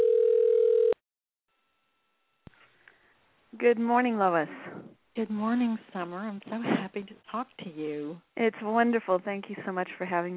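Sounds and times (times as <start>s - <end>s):
telephone dial tone as a telephone is dialed from a computer: 0.0s - 1.0s
speech: 3.6s - 10.3s.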